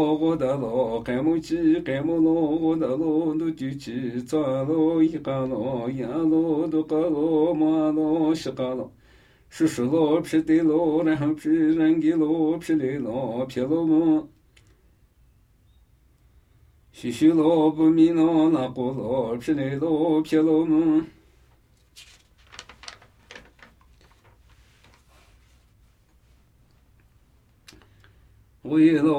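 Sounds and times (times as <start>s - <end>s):
Namuyi Tibetan ritual chanting: 0.0s - 14.3s, 16.9s - 21.3s, 28.6s - 29.1s.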